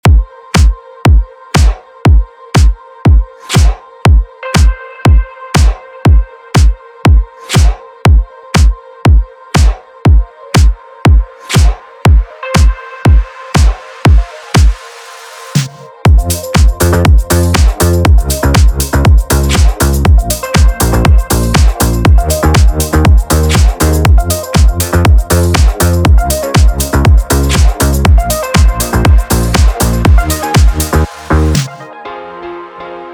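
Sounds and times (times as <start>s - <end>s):
1980s house music vocal instrumental: 0.0s - 33.1s.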